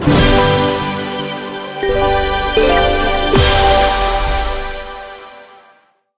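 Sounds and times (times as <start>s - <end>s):
large win sound: 0.2s - 5.0s.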